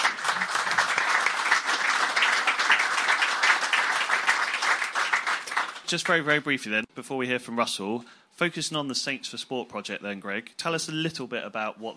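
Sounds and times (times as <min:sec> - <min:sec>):
audience applause: 0:00.0 - 0:06.2
speech: 0:05.9 - 0:11.9.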